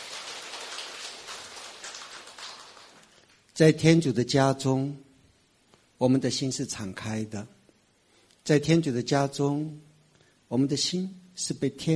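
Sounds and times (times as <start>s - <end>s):
applause: 0.0s - 3.4s
speech: 3.6s - 5.0s, 6.0s - 7.6s, 8.4s - 9.9s, 10.5s - 11.9s.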